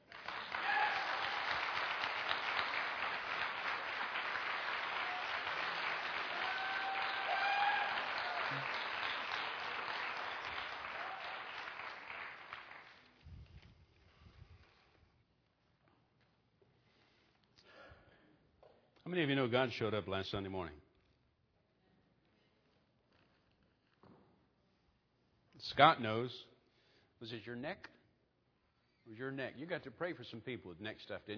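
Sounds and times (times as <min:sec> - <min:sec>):
audience applause: 0:00.0 - 0:13.1
speech: 0:19.1 - 0:20.8, 0:25.8 - 0:26.5, 0:27.2 - 0:28.0, 0:29.1 - 0:31.3.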